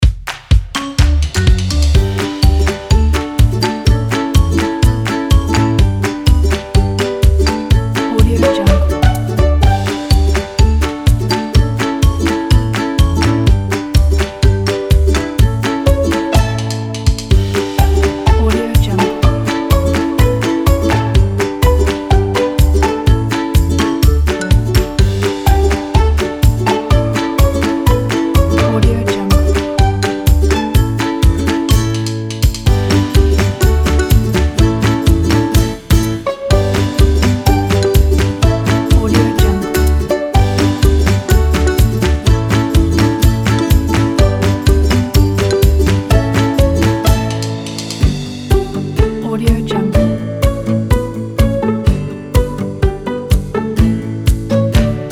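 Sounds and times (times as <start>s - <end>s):
playful music: 0.0s - 55.1s.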